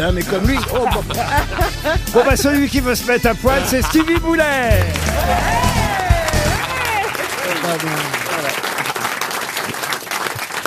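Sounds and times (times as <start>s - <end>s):
speech: 0.0s - 5.8s, 7.7s - 8.2s
laughter: 0.0s - 9.2s
audience clapping: 3.9s - 10.6s
people calling out and whooping: 4.7s - 7.6s.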